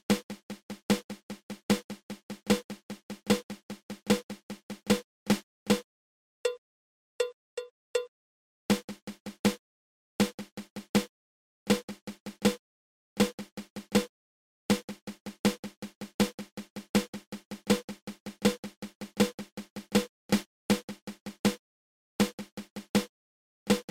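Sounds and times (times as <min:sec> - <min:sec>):
flam paradiddle drum rudiment: 0:00.0 - 0:05.8, 0:08.7 - 0:09.6, 0:10.2 - 0:11.1, 0:11.7 - 0:12.6, 0:13.2 - 0:14.1, 0:14.7 - 0:21.6, 0:22.2 - 0:23.1, 0:23.7 - 0:23.8.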